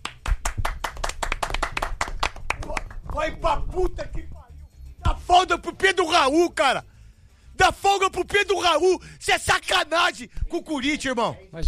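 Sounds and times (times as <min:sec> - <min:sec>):
round of applause: 0:00.0 - 0:03.0
speech: 0:03.2 - 0:04.3, 0:05.3 - 0:06.9, 0:07.6 - 0:11.6.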